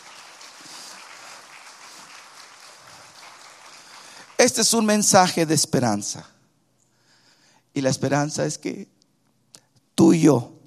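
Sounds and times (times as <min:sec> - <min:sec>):
audience applause: 0:00.0 - 0:05.2
speech: 0:04.4 - 0:06.4, 0:07.8 - 0:09.0, 0:10.0 - 0:10.6.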